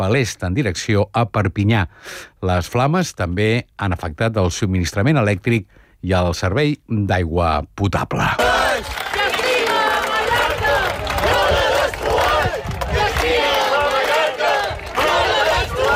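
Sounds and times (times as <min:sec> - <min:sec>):
speech: 0:00.0 - 0:09.0
crowd of thousands shouting at protest: 0:08.4 - 0:15.9.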